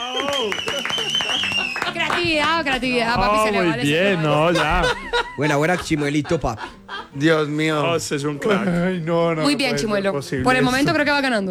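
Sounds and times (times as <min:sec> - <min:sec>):
people clapping: 0:00.0 - 0:06.5
laughter: 0:00.0 - 0:11.3
speech: 0:00.2 - 0:00.7, 0:02.2 - 0:11.4.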